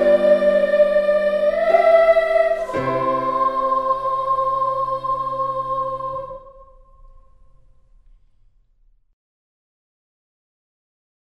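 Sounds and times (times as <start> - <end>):
national anthem: 0.0 - 7.3.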